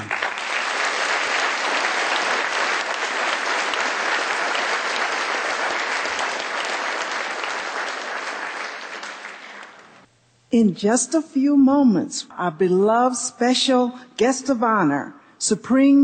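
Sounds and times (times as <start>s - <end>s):
audience applause: 0.0s - 10.1s
speech: 10.5s - 16.0s.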